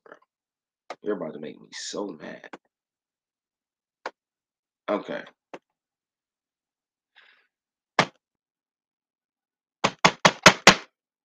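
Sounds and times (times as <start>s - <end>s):
speech: 1.0s - 2.6s, 4.9s - 5.4s
banging on a computer: 9.8s - 10.9s.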